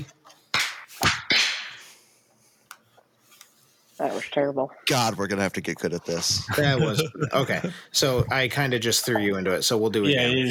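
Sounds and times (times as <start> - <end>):
group clapping hands together on cue: 0.0 - 1.8
speech: 4.0 - 10.5
laughter: 6.2 - 8.2.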